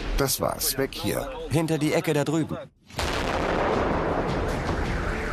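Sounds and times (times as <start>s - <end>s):
speech: 0.2s - 3.0s
thunderous artillery fire: 2.9s - 5.1s.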